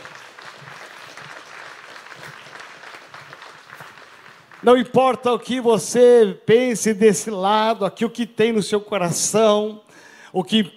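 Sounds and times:
audience applauding: 0:00.0 - 0:05.2
speech: 0:04.6 - 0:10.7.

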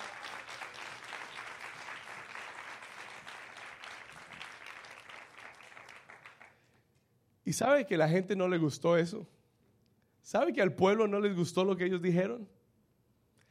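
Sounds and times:
audience applause: 0:00.0 - 0:06.6
speech: 0:07.5 - 0:09.4, 0:10.3 - 0:12.6.

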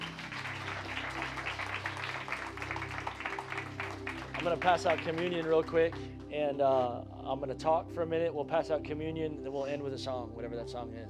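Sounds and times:
crowd applause: 0:00.0 - 0:06.0
speech: 0:04.4 - 0:11.0.

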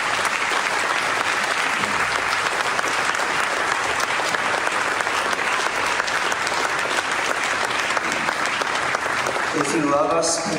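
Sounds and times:
audience clapping: 0:00.0 - 0:10.5
speech: 0:10.0 - 0:10.5.

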